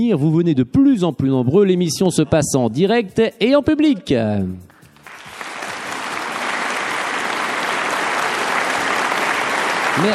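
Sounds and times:
speech: 0.0s - 4.8s, 10.0s - 10.1s
audience applause: 5.0s - 10.1s.

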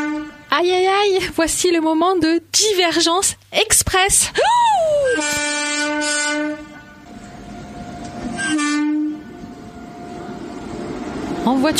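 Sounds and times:
train horn: 0.0s - 0.7s, 5.1s - 10.4s
speech: 0.6s - 5.4s, 11.5s - 11.7s
train passing: 5.0s - 11.7s.

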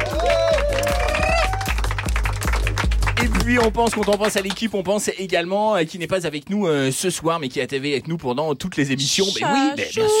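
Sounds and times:
steady thumping music beat: 0.0s - 4.5s
applause: 0.0s - 5.0s
speech: 3.5s - 10.1s.

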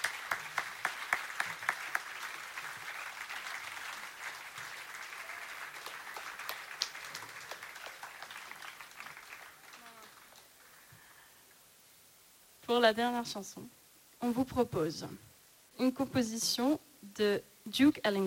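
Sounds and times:
audience applause: 0.0s - 10.9s
speech: 12.7s - 18.2s.

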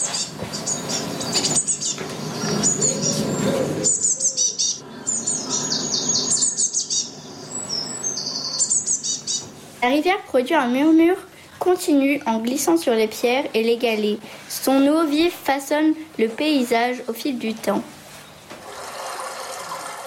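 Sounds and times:
blue tit calling: 0.0s - 9.6s
speech: 9.8s - 18.0s.

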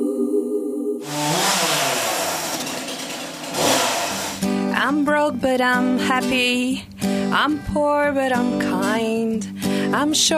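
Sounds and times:
chainsaw running: 1.0s - 4.7s
speech: 4.9s - 10.3s.

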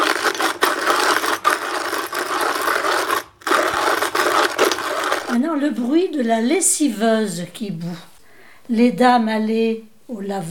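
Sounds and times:
manual coffee grinder being turned: 0.0s - 5.9s
speech: 5.5s - 8.1s, 8.7s - 10.4s.

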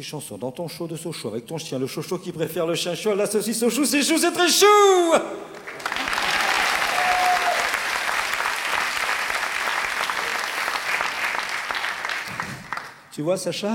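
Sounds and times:
speech: 0.0s - 5.7s, 13.2s - 13.7s
audience applause: 5.5s - 13.0s.

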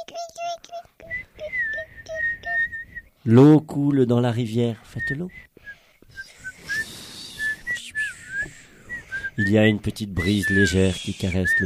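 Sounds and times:
children whistling like singing little birds: 1.0s - 3.1s, 5.6s - 9.5s, 10.2s - 11.6s
speech: 3.2s - 5.5s, 9.4s - 11.6s.

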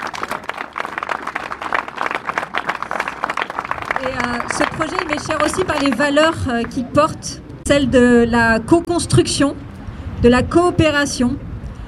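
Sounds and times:
audience applause: 0.0s - 6.2s
speech: 4.2s - 9.6s, 10.2s - 11.4s.

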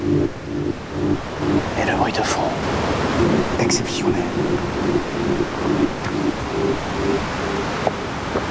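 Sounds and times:
ocean surf waves crashing: 0.0s - 8.5s
speech: 3.7s - 7.5s.

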